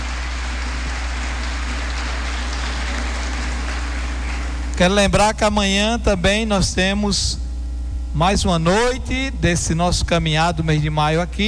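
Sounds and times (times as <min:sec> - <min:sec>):
audience applause: 0:00.0 - 0:04.8
speech: 0:04.8 - 0:07.4, 0:08.1 - 0:11.4.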